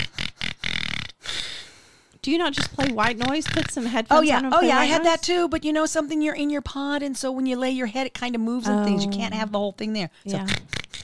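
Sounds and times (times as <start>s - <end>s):
person imitating snoring: 0.0s - 1.6s, 2.6s - 4.9s, 10.3s - 11.0s
speech: 2.2s - 10.8s.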